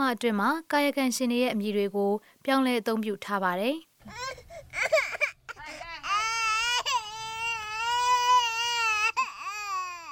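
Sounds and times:
speech: 0.0 - 5.1
small child in a village crying while pulled along by its mother: 4.1 - 10.1.

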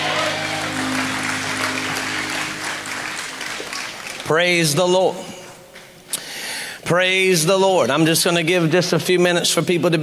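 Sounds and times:
audience shouting amen: 0.0 - 3.7
audience clapping: 0.0 - 5.6
speech: 4.3 - 5.3, 6.9 - 10.0.

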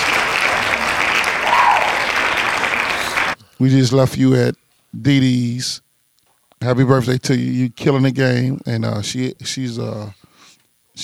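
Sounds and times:
hand clapping for a birthday shout-out: 0.0 - 3.4
speech: 3.6 - 5.9, 6.6 - 10.2.

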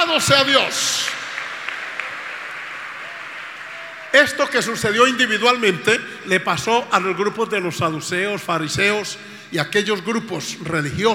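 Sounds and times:
speech: 0.1 - 1.2, 4.1 - 11.1
audience applause: 0.8 - 4.4.

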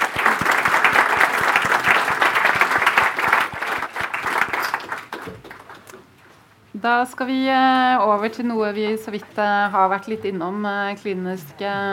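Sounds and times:
audience applause: 0.0 - 6.1
speech: 6.8 - 11.9.

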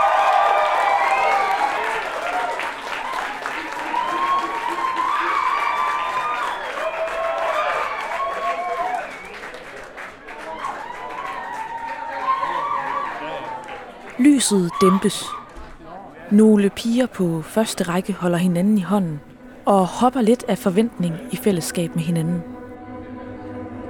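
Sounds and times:
concert crowd clapping and cheering: 0.0 - 15.6
speech: 14.4 - 15.4, 16.3 - 22.6.

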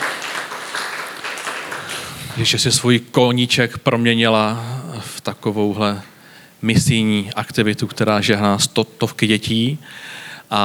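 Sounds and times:
audience applause: 0.0 - 2.8
speech: 2.4 - 10.6.

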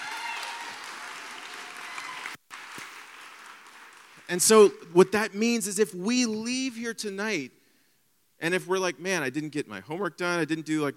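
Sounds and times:
crowd applause: 0.0 - 4.4
speech: 4.3 - 7.6, 8.4 - 10.9.

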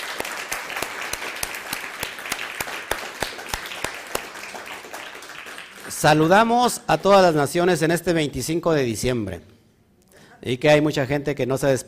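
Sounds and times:
crowd applauding: 0.0 - 6.6
speech: 5.9 - 9.5, 10.4 - 11.8.

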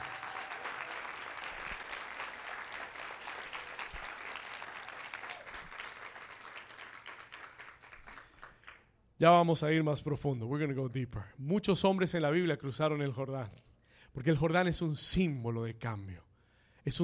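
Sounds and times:
audience applause: 0.0 - 8.8
speech: 9.2 - 17.0.

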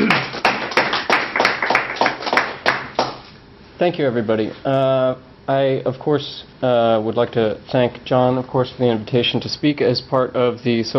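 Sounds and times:
lecture audience applauding to welcome a speaker: 0.0 - 3.2
speech: 3.8 - 10.9.

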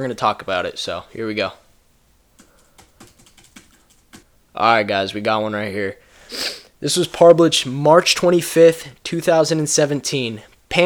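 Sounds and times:
speech: 0.0 - 1.6, 4.6 - 10.8
faint computer keyboard typing a Google search: 2.3 - 4.3.

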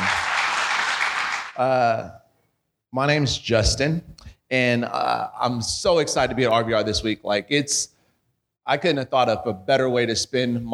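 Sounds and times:
audience applause for the band: 0.0 - 1.6
speech: 1.6 - 2.2, 2.9 - 7.9, 8.7 - 10.7.

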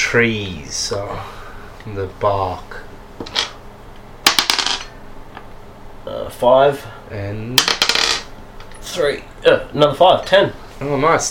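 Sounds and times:
speech: 0.1 - 3.5, 6.1 - 7.8, 8.9 - 11.3
dice rolling on a hard surface: 4.2 - 4.9, 7.6 - 8.3.

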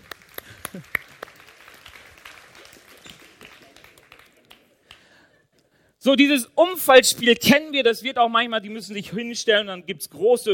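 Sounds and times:
audience applause: 0.0 - 5.1
speech: 0.8 - 1.0, 6.0 - 10.5.

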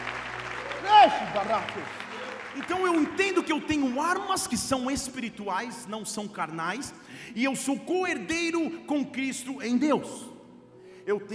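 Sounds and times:
crowd clapping: 0.0 - 5.3
loud drawn-out shout: 0.6 - 2.7
speech: 1.2 - 2.0, 2.6 - 10.3, 11.1 - 11.3.

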